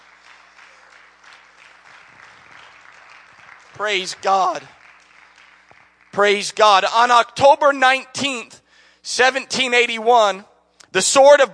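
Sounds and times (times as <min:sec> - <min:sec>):
audience clapping hands: 0:00.0 - 0:07.2
speech: 0:03.8 - 0:04.8, 0:06.2 - 0:11.5.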